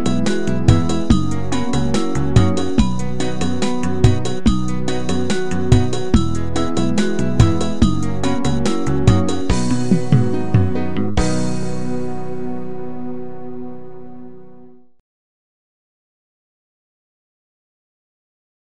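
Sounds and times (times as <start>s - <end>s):
karaoke singing: 0.0s - 12.4s.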